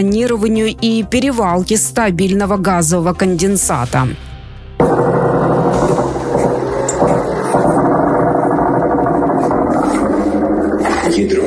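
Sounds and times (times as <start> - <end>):
speech: 0.0 - 4.3
attack drones buzzing overhead: 4.8 - 11.4.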